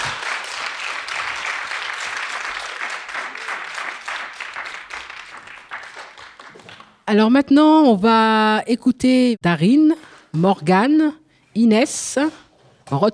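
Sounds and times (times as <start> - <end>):
audience applause: 0.0 - 6.9
speech: 7.1 - 13.1.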